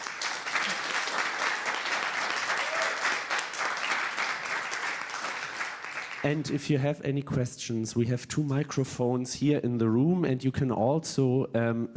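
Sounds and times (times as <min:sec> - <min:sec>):
audience applause: 0:00.0 - 0:06.4
speech: 0:06.2 - 0:11.9.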